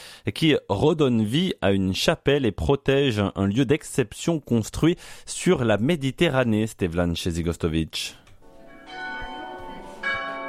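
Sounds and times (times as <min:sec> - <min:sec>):
speech: 0:00.2 - 0:08.2
two church bells ringing: 0:08.4 - 0:10.4.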